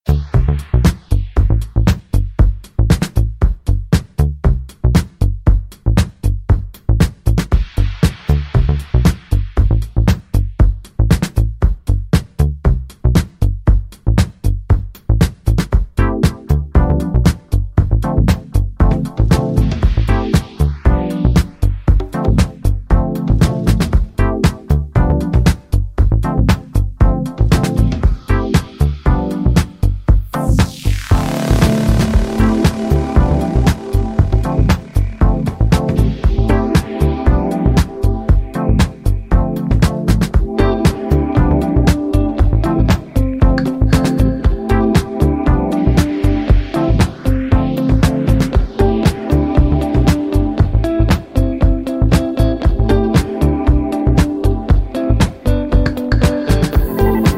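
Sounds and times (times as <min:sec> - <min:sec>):
disco drums: 0:00.0 - 0:57.3.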